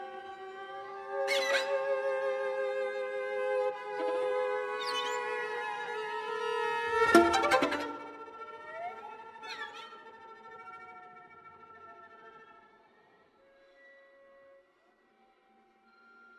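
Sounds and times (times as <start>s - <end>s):
string quartet: 0.0s - 8.6s.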